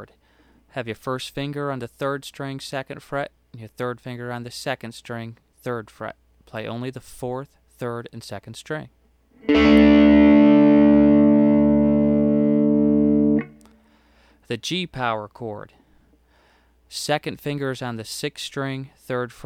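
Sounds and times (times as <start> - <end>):
open guitar power chords: 9.4 - 13.8.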